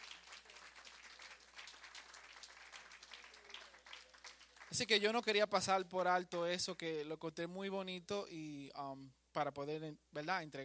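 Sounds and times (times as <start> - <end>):
crowd applauding: 0.0 - 5.2
speech: 4.7 - 10.6.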